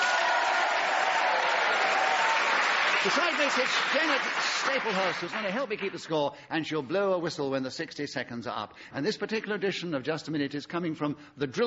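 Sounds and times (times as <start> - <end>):
audience applause on a comedy panel game show: 0.0 - 6.1
speech: 3.0 - 11.6.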